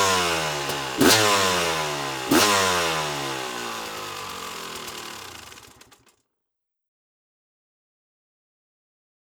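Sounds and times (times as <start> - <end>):
KTM EXC 650 motorcycle engine: 0.0 - 6.1.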